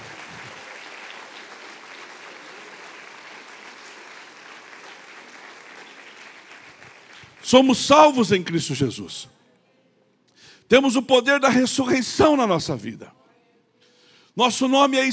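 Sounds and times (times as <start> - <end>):
audience applauding: 0.0 - 7.7
speech: 7.4 - 9.4, 10.7 - 13.2, 14.4 - 15.1.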